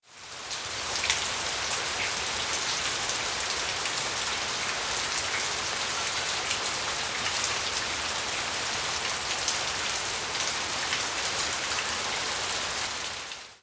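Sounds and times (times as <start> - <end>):
rain: 0.0 - 13.6.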